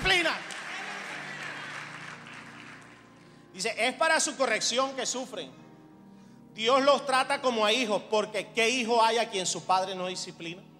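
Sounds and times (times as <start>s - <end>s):
audience applause: 0.0s - 3.2s
speech: 3.6s - 5.7s, 6.6s - 10.7s.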